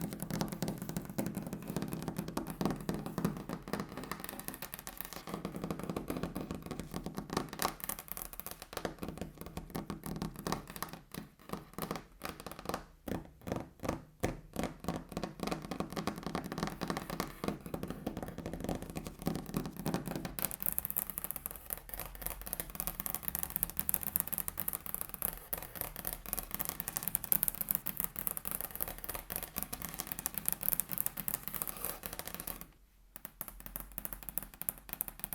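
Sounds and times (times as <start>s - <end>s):
fingers tapping a table: 0.0s - 35.3s.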